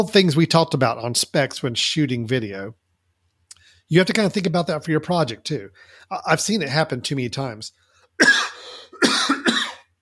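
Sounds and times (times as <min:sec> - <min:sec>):
speech: 0:00.0 - 0:02.8, 0:03.9 - 0:09.3
person coughing: 0:08.2 - 0:09.9.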